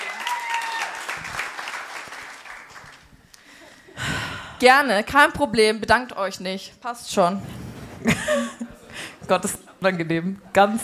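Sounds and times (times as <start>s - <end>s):
audience applause: 0.0s - 3.1s
speech: 4.6s - 7.6s, 8.2s - 8.7s, 9.3s - 10.8s.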